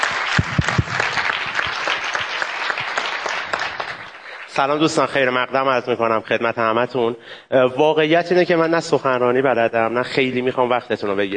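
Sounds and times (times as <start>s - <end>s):
audience applause: 0.0s - 4.8s
speech: 4.6s - 11.3s.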